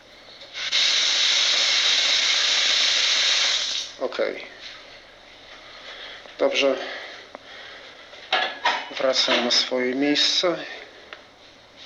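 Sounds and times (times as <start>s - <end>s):
water running into bathtub: 0.6s - 3.9s
speech: 4.2s - 4.6s, 6.4s - 7.0s, 9.0s - 10.8s.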